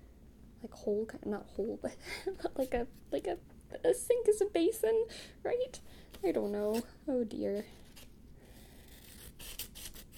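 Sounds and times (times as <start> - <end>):
speech: 0.6 - 7.8
scissors snipping through a paper page: 7.6 - 10.1.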